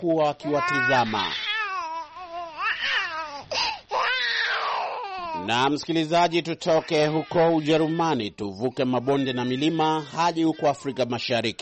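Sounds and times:
speech: 0:00.0 - 0:01.5, 0:05.4 - 0:11.6
baby carried on a woman's back crying at a cultural park: 0:00.4 - 0:05.6, 0:06.6 - 0:08.2, 0:08.8 - 0:11.2.

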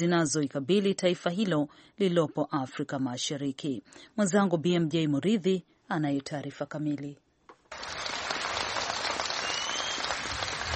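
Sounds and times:
speech: 0:00.0 - 0:08.1
villagers clapping and cheering in Kogelo, Siaya County, Kenya: 0:07.7 - 0:10.7.

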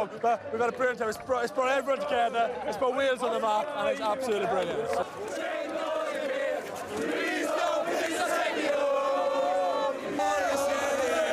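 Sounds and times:
speech: 0:00.0 - 0:05.0
Welsh football fans cheering: 0:00.0 - 0:11.3
Welsh football fans singing: 0:03.9 - 0:11.3.

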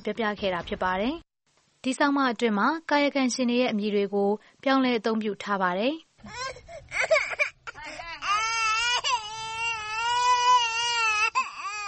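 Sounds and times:
speech: 0:00.0 - 0:07.4
young child crying while being pulled along by the mother: 0:06.3 - 0:11.8.

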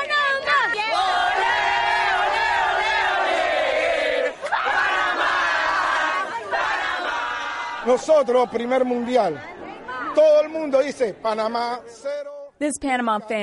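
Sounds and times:
football fans chanting and cheering: 0:00.0 - 0:10.5
speech: 0:07.9 - 0:09.5, 0:10.2 - 0:13.4.

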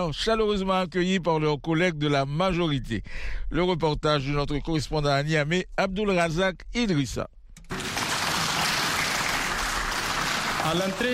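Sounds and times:
speech: 0:00.0 - 0:07.4, 0:10.7 - 0:11.1
applause from members of parliament in the chamber in Niamey: 0:07.7 - 0:11.1.

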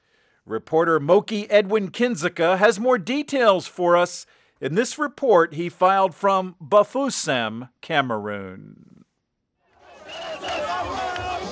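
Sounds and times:
speech: 0:00.5 - 0:09.0
thousands of football supporters cheering in Bafoussam, Cameroon: 0:09.7 - 0:11.4.

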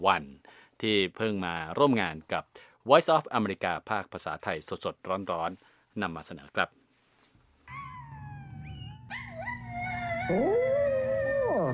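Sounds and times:
speech: 0:00.0 - 0:06.8, 0:10.3 - 0:10.7
small dog howling: 0:07.7 - 0:11.7.

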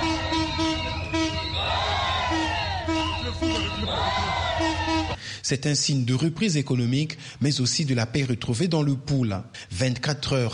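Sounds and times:
market vendors cheering and clapping for an arriving train: 0:00.0 - 0:05.2
speech: 0:05.4 - 0:10.5.

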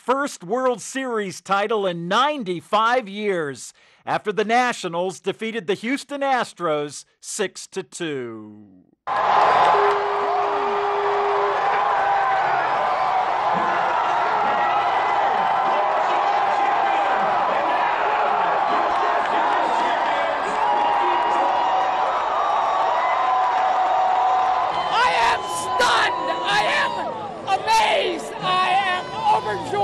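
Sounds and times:
speech: 0:00.0 - 0:10.4
baseball fans at a Nationals Park watch party cheering: 0:09.1 - 0:29.8
fans shouting and whooping: 0:09.1 - 0:29.8.

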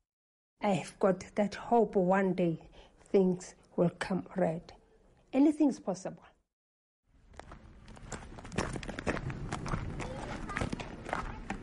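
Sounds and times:
speech: 0:00.6 - 0:06.3
high heels crunching down a path in Mansiville near Krugersdorp: 0:07.2 - 0:11.6.

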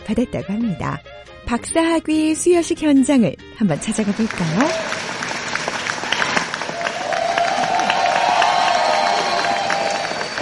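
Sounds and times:
speech: 0:00.1 - 0:05.0
students applauding at ceremony: 0:03.8 - 0:10.4
cheers and a sustained whoop: 0:06.0 - 0:10.4.

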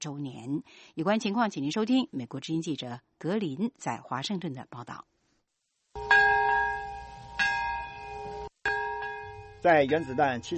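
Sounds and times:
speech: 0:00.0 - 0:05.1, 0:09.6 - 0:10.5
memorial bell tolling at Nagasaki Peace Park: 0:06.0 - 0:10.5.

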